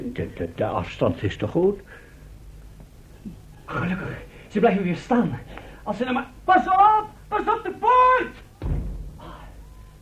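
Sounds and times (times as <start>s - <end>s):
speech: 0.0s - 2.0s, 3.2s - 8.8s
door slamming shut: 8.6s - 9.5s.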